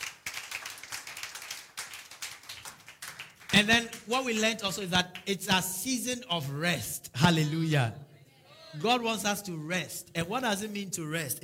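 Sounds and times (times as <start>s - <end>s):
crowd clapping: 0.0s - 4.3s
speech: 3.6s - 8.0s, 8.7s - 11.4s.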